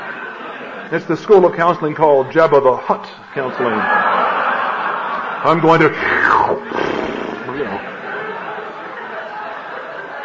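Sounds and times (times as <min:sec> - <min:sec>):
speech: 0:00.9 - 0:04.3, 0:05.4 - 0:06.7, 0:07.6 - 0:07.9
laughter: 0:03.5 - 0:10.2
person imitating heavy breathing: 0:05.9 - 0:07.8.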